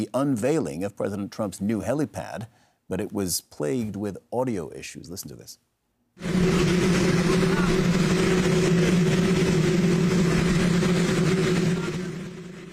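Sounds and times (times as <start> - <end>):
speech: 0.0 - 9.4
waiting helicopter engine noise: 6.2 - 12.7.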